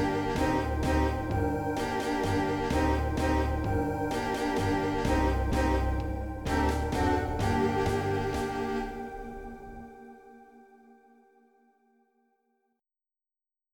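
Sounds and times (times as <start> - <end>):
cave ambience: 0.0 - 10.3.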